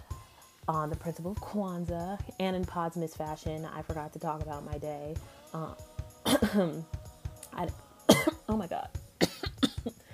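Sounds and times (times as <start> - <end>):
speech: 0.7 - 7.0, 7.6 - 7.8, 8.5 - 9.0
person coughing and clearing throat after eating crackers with cheese: 6.2 - 6.9, 8.1 - 8.6, 9.2 - 10.1.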